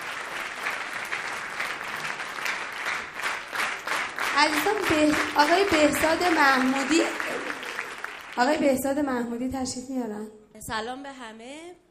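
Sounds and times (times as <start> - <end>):
audience applause: 0.0 - 9.1
speech: 4.4 - 7.4, 8.4 - 11.8.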